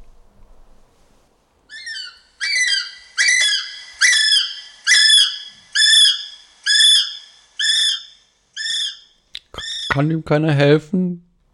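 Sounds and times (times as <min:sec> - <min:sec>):
kiwi bird call: 0:01.7 - 0:10.1
speech: 0:10.0 - 0:11.3.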